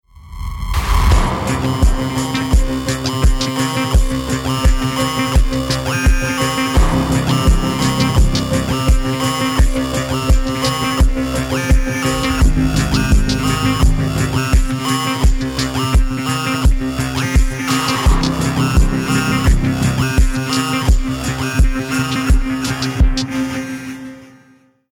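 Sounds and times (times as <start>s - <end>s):
action music: 0.2s - 23.3s.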